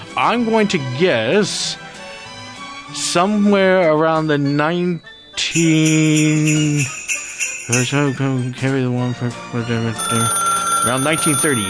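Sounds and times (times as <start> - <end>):
speech: 0.2 - 1.8, 2.9 - 7.0, 7.7 - 11.6
telephone ringing with an incoming call: 10.0 - 11.6.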